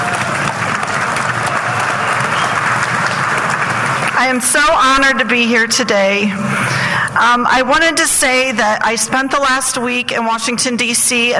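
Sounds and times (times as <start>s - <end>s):
audience applause: 0.0s - 4.4s
speech: 4.2s - 11.3s.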